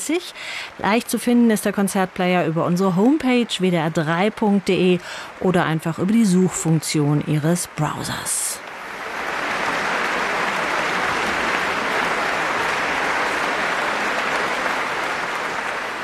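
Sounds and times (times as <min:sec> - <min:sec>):
speech: 0:00.0 - 0:08.7
large concert audience applause: 0:08.7 - 0:16.0.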